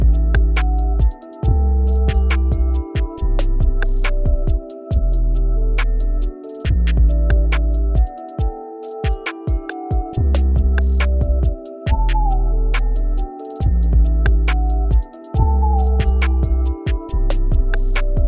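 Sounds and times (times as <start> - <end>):
bass melody: 0.0 - 8.0, 10.2 - 18.2.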